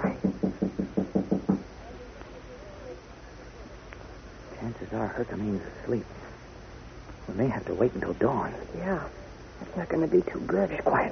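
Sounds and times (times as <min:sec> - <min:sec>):
soft knocking on a door: 0:00.0 - 0:01.7
speech: 0:04.9 - 0:06.2, 0:07.3 - 0:11.1.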